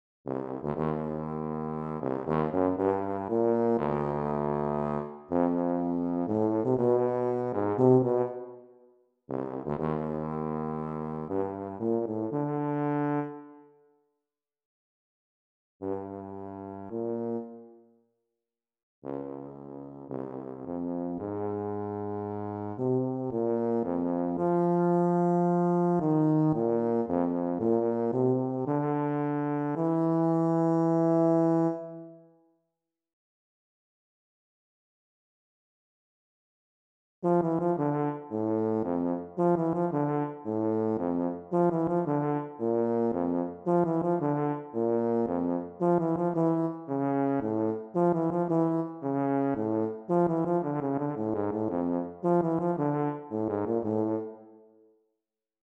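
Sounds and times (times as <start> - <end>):
solo tuba serenade: 0.3 - 13.8, 15.8 - 18.0, 19.0 - 32.4, 37.2 - 54.8.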